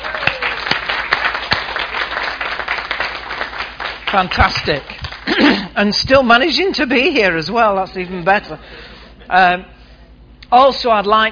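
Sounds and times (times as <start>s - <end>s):
audience clapping: 0.0s - 5.4s
speech: 4.1s - 9.7s, 10.5s - 11.3s.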